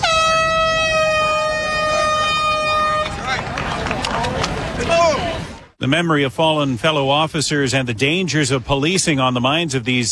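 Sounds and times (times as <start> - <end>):
air horn starting the National Peace Officers Memorial Run in Toronto: 0.0 - 3.4
crowd noise: 0.0 - 10.1
speech: 4.9 - 10.1.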